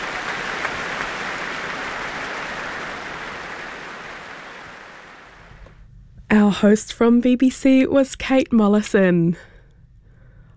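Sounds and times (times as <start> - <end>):
audience applause in concert hall: 0.0 - 5.4
speech: 6.3 - 9.5.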